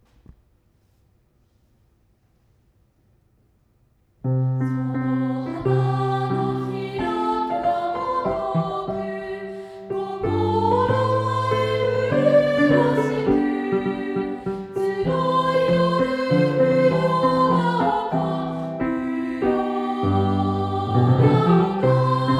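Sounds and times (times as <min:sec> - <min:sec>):
chorus singing: 0:04.6 - 0:22.3.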